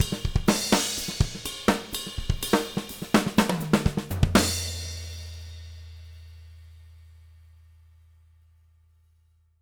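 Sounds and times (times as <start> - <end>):
live drums ending: 0.0 - 6.8.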